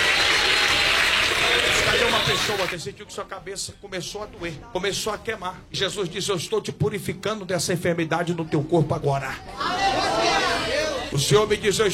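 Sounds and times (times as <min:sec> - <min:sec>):
church congregation clapping: 0:00.0 - 0:02.8
speech: 0:02.3 - 0:09.8, 0:11.1 - 0:11.9.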